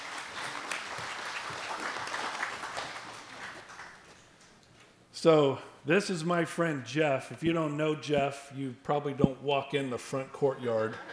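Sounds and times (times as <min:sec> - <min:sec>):
audience applause: 0:00.0 - 0:04.1
speech: 0:05.2 - 0:11.1.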